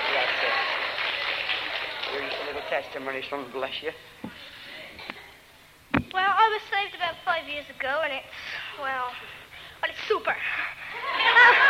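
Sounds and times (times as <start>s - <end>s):
audience clapping: 0.0s - 3.7s
speech: 2.1s - 4.5s, 6.1s - 11.6s
laughter: 10.9s - 11.6s.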